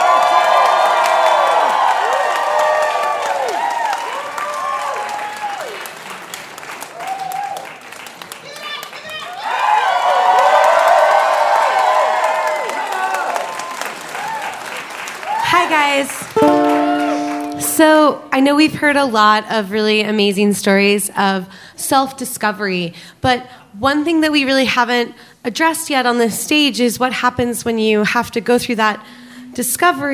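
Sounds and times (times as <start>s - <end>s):
live storytelling audience in Brooklyn clapping: 0.0s - 18.0s
speech: 18.1s - 30.1s.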